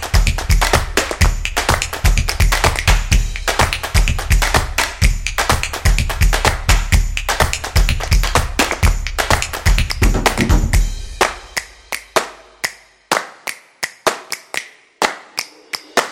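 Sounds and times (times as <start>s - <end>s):
percussion hit: 0.0s - 11.9s.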